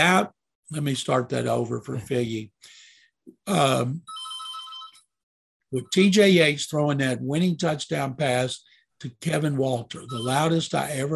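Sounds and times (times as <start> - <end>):
speech: 0.0 - 2.8, 3.4 - 4.2, 5.7 - 11.1
telephone ringing: 4.1 - 5.1, 10.1 - 10.5.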